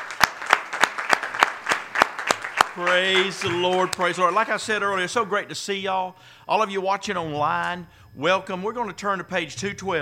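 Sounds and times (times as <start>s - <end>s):
church congregation clapping in unison: 0.0s - 5.1s
speech: 2.8s - 10.0s.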